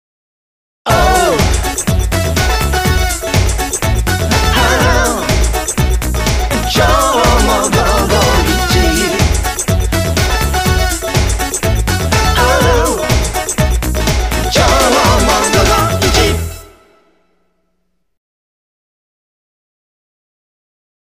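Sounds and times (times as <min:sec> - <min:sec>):
jingle: 0:00.9 - 0:17.3.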